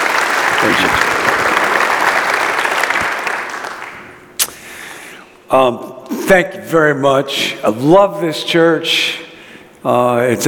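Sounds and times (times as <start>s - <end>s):
audience applause in a church welcoming a speaker: 0.0s - 4.3s
speech: 5.5s - 9.2s, 9.8s - 10.4s.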